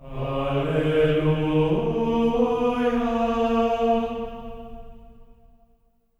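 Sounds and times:
person singing alleluia on D sharp 4: 0.0 - 5.2.

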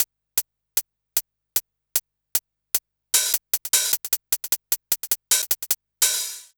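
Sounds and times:
drum loop: 3.2 - 6.5
hi-hat: 3.2 - 6.5.

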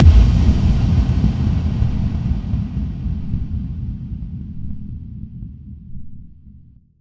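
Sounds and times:
effect kick drum hits: 0.0 - 5.1.

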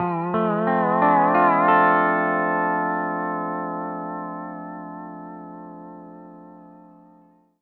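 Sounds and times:
country music loop at 140 BPM: 0.0 - 3.5.

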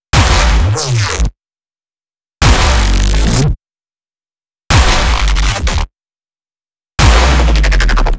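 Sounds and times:
crushing bass: 0.2 - 1.3, 2.4 - 3.6, 4.7 - 5.9, 7.0 - 8.1.

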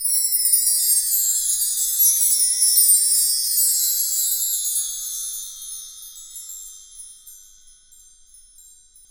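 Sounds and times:
wind chimes: 0.0 - 9.1.

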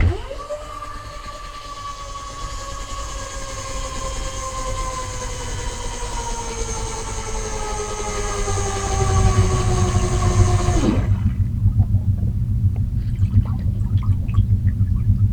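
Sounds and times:
underwater drill long motor: 0.0 - 15.3.

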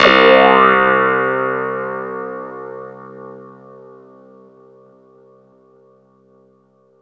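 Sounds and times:
clavinet: 0.0 - 4.0.

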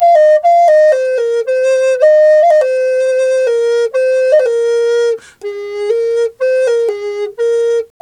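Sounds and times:
flute riffs: 0.0 - 7.9.

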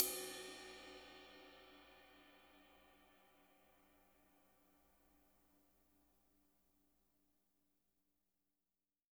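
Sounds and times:
right ride cymbal on a natural drum kit: 0.0 - 2.3.

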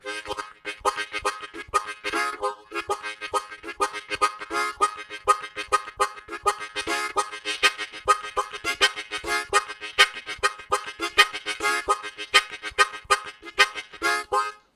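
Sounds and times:
syncopated harmonica riffs: 0.0 - 14.7.

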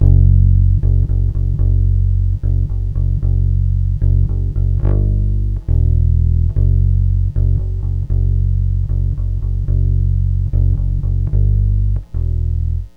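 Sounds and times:
bass F-sharp note: 0.0 - 12.9.

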